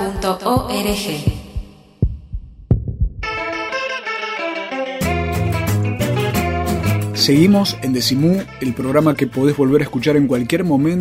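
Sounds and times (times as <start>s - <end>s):
deep heartbeat thumps: 0.0s - 3.5s
speech: 0.2s - 1.3s, 7.2s - 10.9s
sustained synth chord growing into music: 3.2s - 9.9s.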